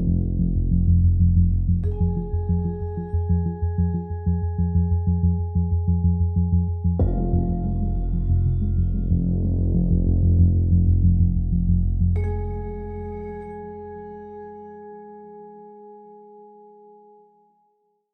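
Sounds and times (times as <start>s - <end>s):
searching suspense music: 0.0s - 14.4s.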